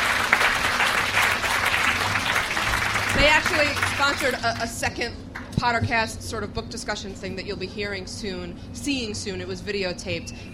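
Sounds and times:
audience clapping: 0.0s - 4.7s
speech: 3.1s - 10.5s.

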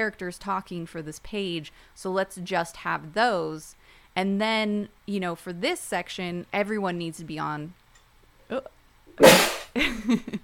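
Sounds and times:
speech: 0.0s - 7.8s, 8.5s - 10.4s
sneeze: 9.2s - 9.8s.

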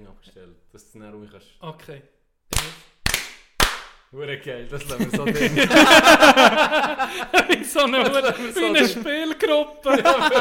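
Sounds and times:
speech: 0.2s - 2.9s, 4.1s - 10.3s
hand clapping: 2.5s - 4.1s
laughter: 4.8s - 10.3s.

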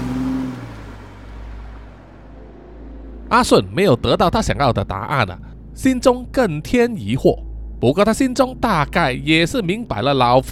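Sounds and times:
car accelerating and driving away: 0.0s - 3.6s
speech: 3.3s - 10.4s.

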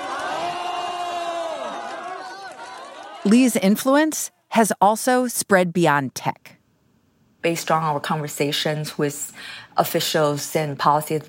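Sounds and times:
crowd cheering at an event: 0.0s - 3.5s
speech: 3.2s - 6.6s, 7.4s - 11.2s.

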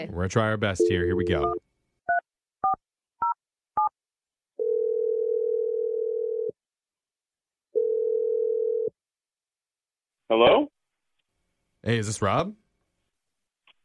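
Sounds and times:
speech: 0.0s - 1.6s, 10.3s - 10.7s, 11.8s - 12.6s
telephone ringing tone on the line: 4.6s - 6.6s, 7.8s - 8.9s.

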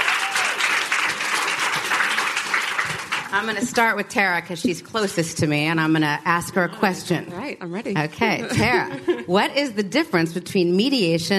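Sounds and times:
audience applause welcoming three women onto a stage: 0.0s - 3.9s
speech: 3.3s - 11.3s
laughter: 8.4s - 9.6s.

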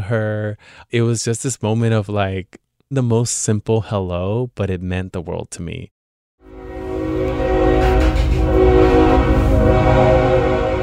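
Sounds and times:
speech: 0.1s - 5.9s
freight train passing: 6.5s - 10.8s.

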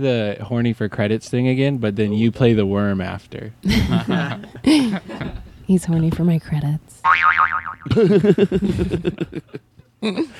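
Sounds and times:
speech: 0.0s - 10.3s
laughter: 3.7s - 5.5s, 7.9s - 10.3s
cartoonish boing sound effect: 7.0s - 7.9s.

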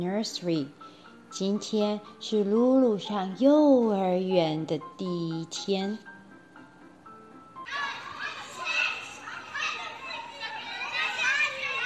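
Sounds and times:
speech: 0.0s - 6.1s
children playing loudly at a nursery: 7.6s - 11.8s.

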